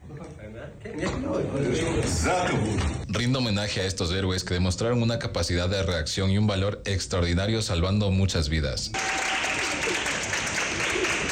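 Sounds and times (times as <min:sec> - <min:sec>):
speech: 0:00.5 - 0:09.4
crowd applauding passengers arriving at an airport after an in-flight emergency: 0:09.0 - 0:11.3.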